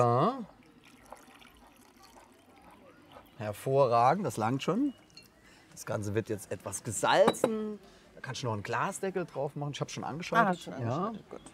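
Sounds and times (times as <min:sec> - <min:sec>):
speech: 0:00.0 - 0:00.5, 0:03.4 - 0:05.0, 0:05.8 - 0:11.5
water poured into a cooking pot to cover potatoes: 0:00.0 - 0:05.4.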